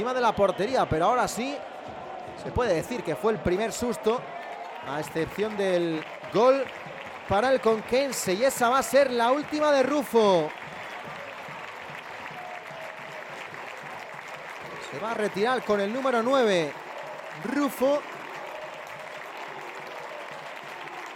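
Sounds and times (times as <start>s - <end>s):
speech: 0.0s - 1.7s, 2.3s - 10.6s, 14.9s - 16.8s, 17.4s - 18.1s
stadium crowd applause and ovation: 0.0s - 21.1s.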